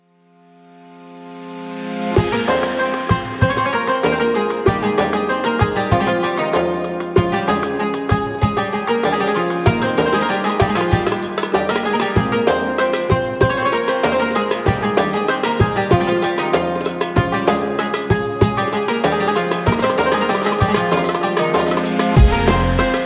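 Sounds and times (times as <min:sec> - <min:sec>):
music: 0:00.0 - 0:23.0.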